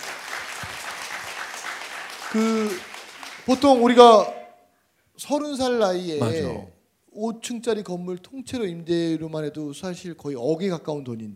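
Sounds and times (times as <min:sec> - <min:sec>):
audience applause: 0:00.0 - 0:04.0
speech: 0:02.3 - 0:02.9, 0:03.5 - 0:04.4, 0:05.2 - 0:11.3.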